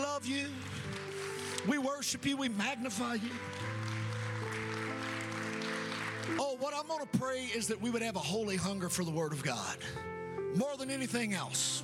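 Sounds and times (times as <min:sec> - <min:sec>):
audience hand clapping: 0:00.0 - 0:06.6
sustained keyboard chords: 0:00.0 - 0:11.8
speech: 0:01.6 - 0:03.8, 0:06.4 - 0:10.0, 0:10.6 - 0:11.8.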